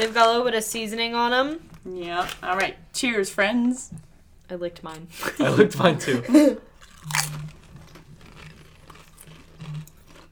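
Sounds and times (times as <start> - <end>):
speech: 0.0 - 7.6
laughter: 5.2 - 6.6
potato chip crunching: 6.7 - 10.3
chewing potato chips: 6.8 - 10.3.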